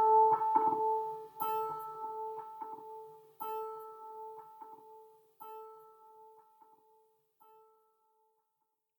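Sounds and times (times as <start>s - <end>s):
electric guitar: 0.0s - 5.0s.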